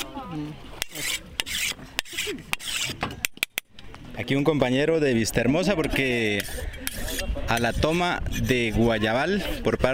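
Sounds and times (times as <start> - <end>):
speech: 0.3 - 1.2, 4.2 - 6.8, 7.5 - 9.9
machete being sharpened: 0.8 - 3.6, 6.3 - 8.7.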